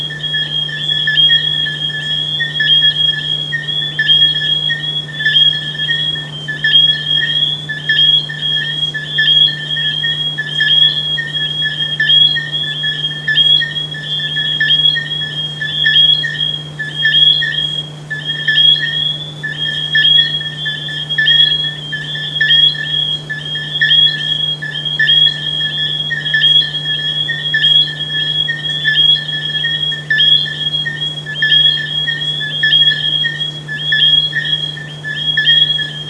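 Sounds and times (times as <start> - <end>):
frogs: 0.0 - 36.0.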